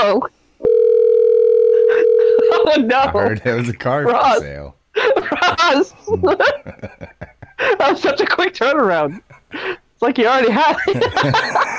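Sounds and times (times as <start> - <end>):
speech: 0.0 - 0.4, 2.8 - 11.7
telephone dial tone: 0.6 - 2.6
laughter: 1.8 - 4.0, 5.0 - 8.3, 10.4 - 11.7.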